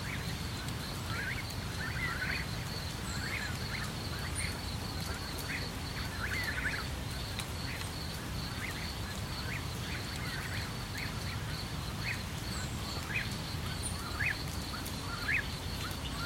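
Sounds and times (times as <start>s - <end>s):
cicadas buzzing in a forest at night: 0.0s - 16.2s
crickets chirping in a forest at night: 0.0s - 16.2s.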